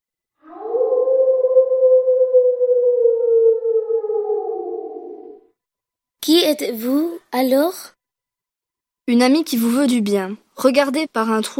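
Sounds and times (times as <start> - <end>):
wolf howling in the distance: 0.4 - 5.6
speech: 6.3 - 8.0, 9.1 - 11.5.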